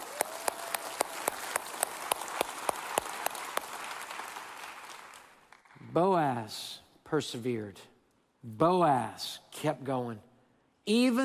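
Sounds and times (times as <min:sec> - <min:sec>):
audience applause: 0:00.0 - 0:05.7
speech: 0:06.0 - 0:10.3, 0:10.9 - 0:11.2.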